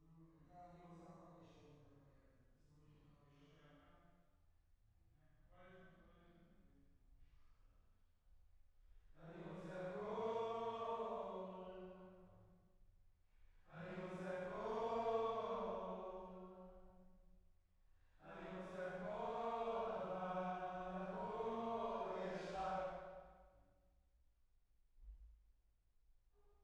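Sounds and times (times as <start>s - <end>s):
choir singing: 9.3s - 12.2s, 13.7s - 16.8s, 18.2s - 23.3s.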